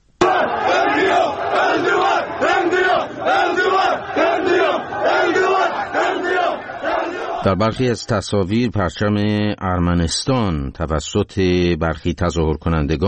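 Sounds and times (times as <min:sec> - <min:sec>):
protest crowd chanting slogans: 0:00.2 - 0:07.9
speech: 0:07.4 - 0:13.0.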